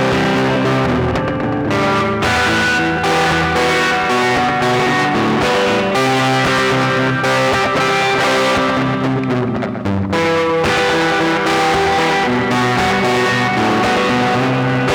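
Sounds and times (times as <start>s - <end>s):
overdriven melancholic guitar: 0.0s - 14.9s.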